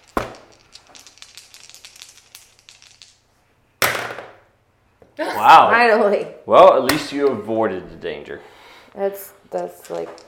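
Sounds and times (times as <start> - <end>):
dice being rolled: 0.0 - 3.2, 9.8 - 10.2
speech: 5.2 - 10.2.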